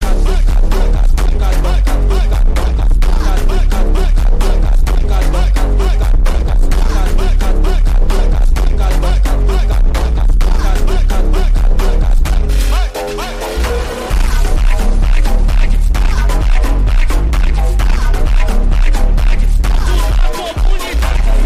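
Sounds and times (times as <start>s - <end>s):
phonk with boosted bass: 0.0s - 21.4s.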